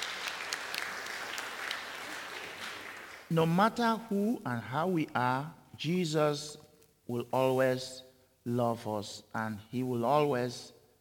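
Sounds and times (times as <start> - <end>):
audience applause: 0.0 - 3.3
speech: 3.3 - 10.8.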